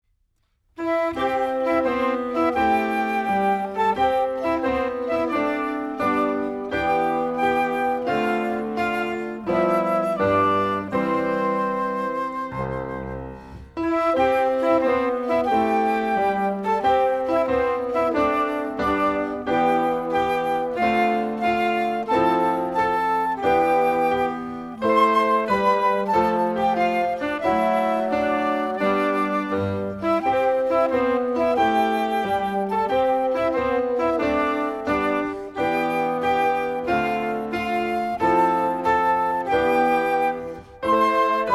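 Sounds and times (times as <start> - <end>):
music: 0.0 - 41.5.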